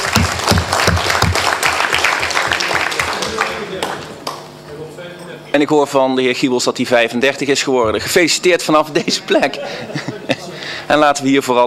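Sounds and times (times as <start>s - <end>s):
applause at a council meeting for a council member's birthday: 0.0s - 4.4s
speech: 5.6s - 10.2s, 10.9s - 11.6s
laughter: 7.8s - 10.9s.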